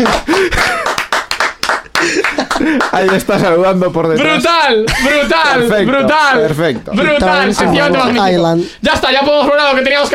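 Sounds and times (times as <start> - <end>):
laughter: 0.0 - 1.1, 1.8 - 3.4, 4.2 - 8.2
applause: 0.0 - 3.3
sharp hand claps: 0.0 - 3.4
speech: 3.0 - 10.1.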